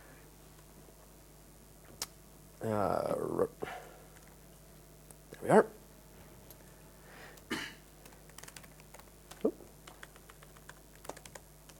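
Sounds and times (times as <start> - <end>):
speech: 2.6 - 3.8, 5.4 - 5.8
typing on a computer keyboard: 8.0 - 11.7.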